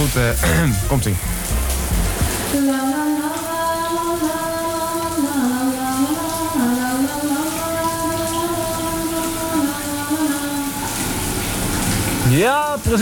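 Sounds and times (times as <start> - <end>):
shower tap water running: 0.0 - 13.0
speech: 0.1 - 3.2, 12.4 - 13.0
person humming: 0.3 - 1.3.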